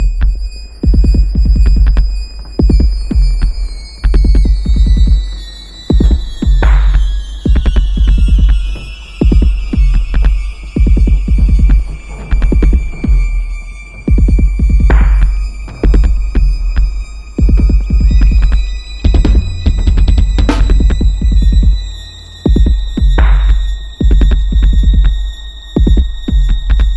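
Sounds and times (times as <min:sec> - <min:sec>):
techno music: 0:00.0 - 0:26.9.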